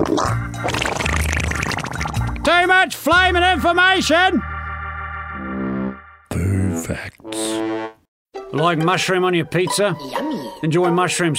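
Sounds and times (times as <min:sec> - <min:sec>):
wet iguana fart: 0:00.0 - 0:02.4
speech: 0:02.5 - 0:04.5, 0:06.9 - 0:07.9, 0:08.5 - 0:11.3.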